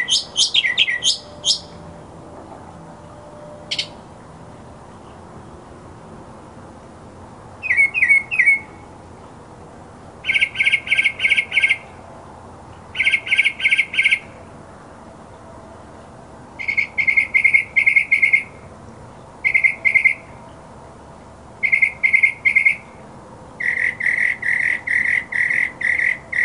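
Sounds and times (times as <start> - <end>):
mockingbird singing: 0.0 - 1.8, 3.7 - 4.0, 7.6 - 8.8, 10.2 - 11.8, 12.9 - 14.3, 16.6 - 18.5, 19.4 - 20.3, 21.6 - 22.9, 23.6 - 26.4.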